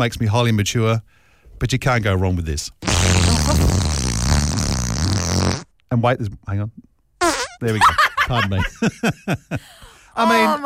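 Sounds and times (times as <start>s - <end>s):
speech: 0.0s - 3.8s, 5.9s - 6.9s, 7.6s - 10.6s
fart noise sound effect: 2.8s - 5.7s, 7.2s - 7.6s.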